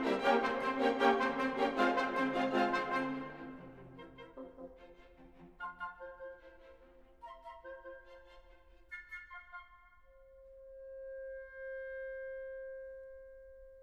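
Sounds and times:
folk melody with variations played allegro marcato: 0.0 - 8.8.

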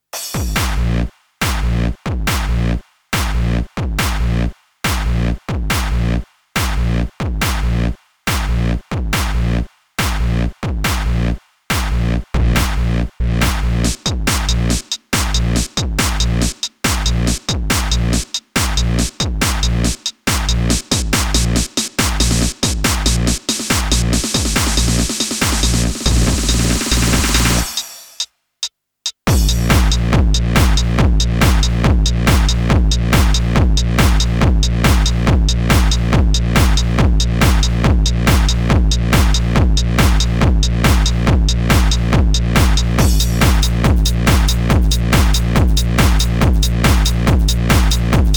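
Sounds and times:
hardstyle music mix: 0.1 - 28.3, 29.3 - 48.3.

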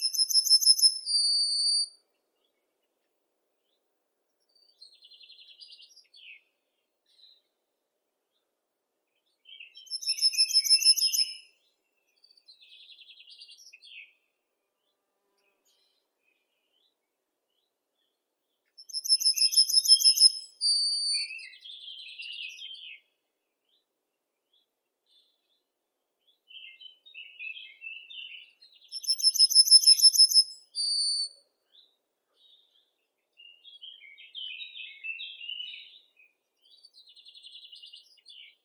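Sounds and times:
yellowhammer Emberiza citrinella: 0.0 - 2.0, 9.4 - 14.2, 18.7 - 23.1, 26.3 - 38.6.

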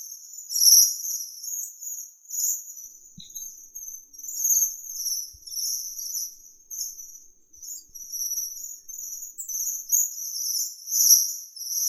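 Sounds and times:
Bohemian waxwing Bombycilla garrulus calling: 3.0 - 9.9.

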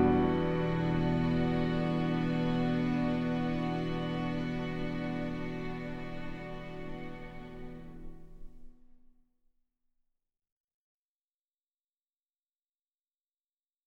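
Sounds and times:
off vocal instrumental music: 0.0 - 8.7.

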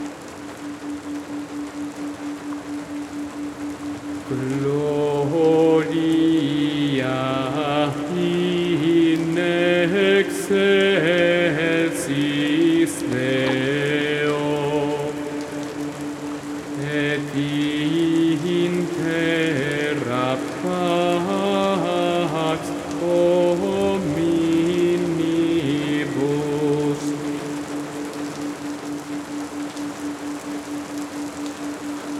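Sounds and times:
night rain: 0.0 - 32.1
Gregorian chants: 4.3 - 28.6.

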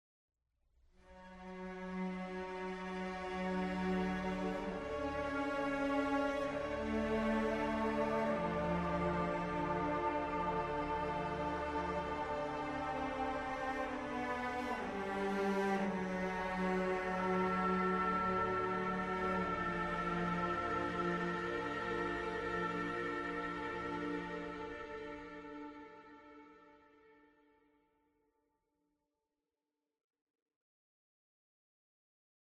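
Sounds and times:
ambient music: 1.4 - 27.2.

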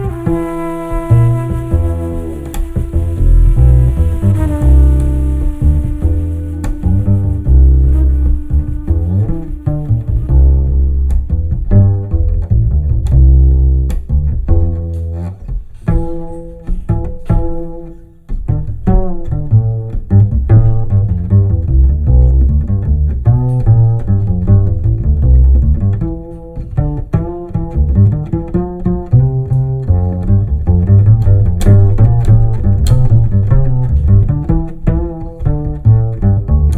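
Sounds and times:
musical improvisation: 0.0 - 36.7.

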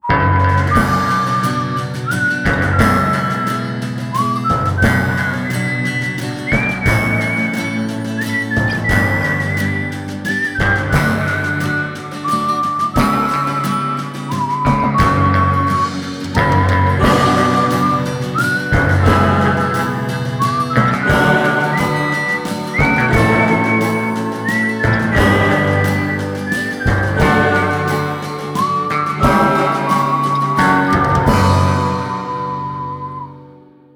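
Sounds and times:
whistle: 0.0 - 33.9.

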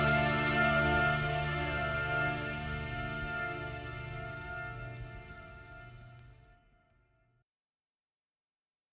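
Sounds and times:
instrumental music: 0.0 - 6.5.

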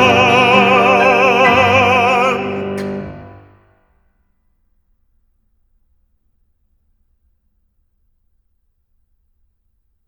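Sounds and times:
song for voice and piano: 0.0 - 3.5.

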